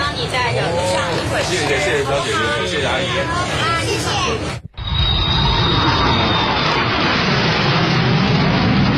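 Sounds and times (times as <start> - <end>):
speech: 0.2 - 4.7
airplane taking off: 3.4 - 8.9.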